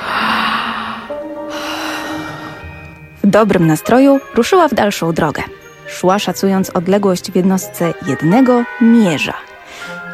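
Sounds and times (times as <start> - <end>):
loud yawn: 0.0 - 2.7
speech: 3.3 - 10.0.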